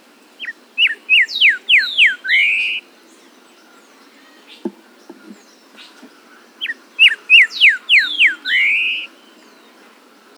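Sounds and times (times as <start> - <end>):
bird whistling song: 0.4 - 2.8, 4.2 - 9.7.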